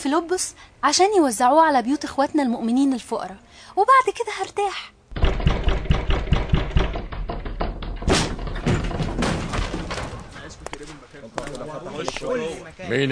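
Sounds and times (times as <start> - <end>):
speech: 0.0 - 5.0, 11.4 - 13.0
heavy thuds of a door being broken down: 5.1 - 10.5.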